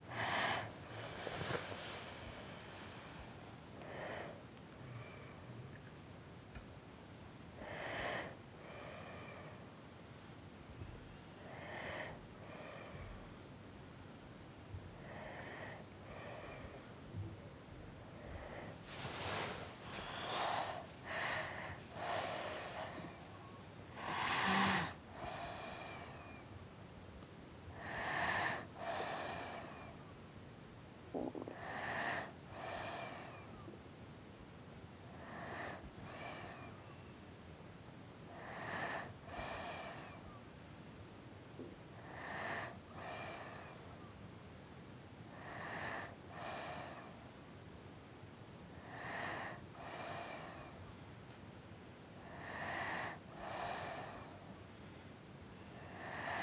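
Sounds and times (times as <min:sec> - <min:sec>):
breathing: 0:00.0 - 0:05.5, 0:07.6 - 0:09.7, 0:11.4 - 0:13.4, 0:14.8 - 0:26.5, 0:27.7 - 0:30.0, 0:31.4 - 0:33.8, 0:35.1 - 0:37.1, 0:38.3 - 0:40.4, 0:42.0 - 0:44.1, 0:45.3 - 0:47.4, 0:48.8 - 0:51.0, 0:52.2 - 0:56.4.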